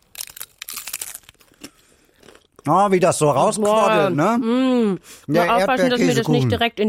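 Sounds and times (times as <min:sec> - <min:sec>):
teeth biting into a crunchy taco shell filled with quark: 0:00.0 - 0:02.6
speech: 0:02.6 - 0:06.8.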